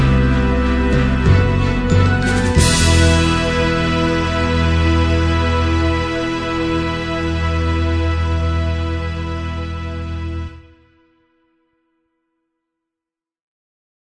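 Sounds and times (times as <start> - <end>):
orchestral cue: 0.0 - 11.0.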